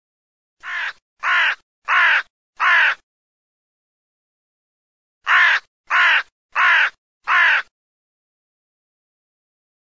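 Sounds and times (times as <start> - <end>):
crow cawing: 0.6 - 3.0, 5.2 - 7.7.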